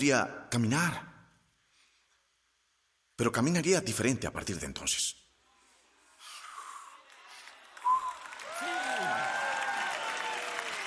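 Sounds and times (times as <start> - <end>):
speech: 0.0 - 1.1, 3.2 - 5.2
audience shouting and cheering: 7.1 - 10.8
sharp whoops: 7.8 - 10.8.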